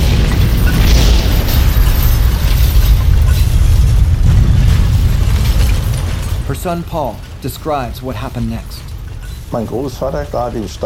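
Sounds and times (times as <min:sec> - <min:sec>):
explosion blast near a village: 0:00.0 - 0:09.3
speech: 0:06.6 - 0:08.9, 0:09.5 - 0:10.8.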